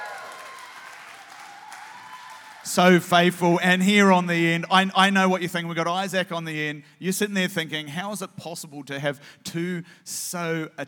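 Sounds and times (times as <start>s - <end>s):
whoops and shouts: 0.0s - 2.7s
crowd clapping and cheering: 0.0s - 3.4s
speech: 2.6s - 10.8s.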